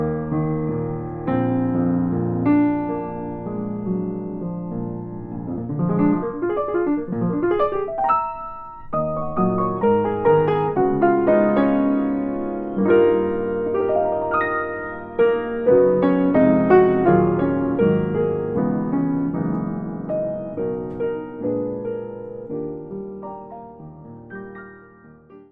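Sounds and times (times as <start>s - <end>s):
freshly tuned open piano: 0.0s - 25.5s.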